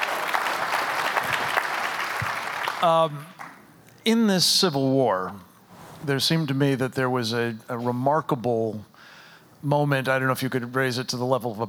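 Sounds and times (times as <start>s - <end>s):
audience applause for a guest being introduced: 0.0s - 3.6s
speech: 2.8s - 3.4s, 4.0s - 8.9s, 9.6s - 11.6s.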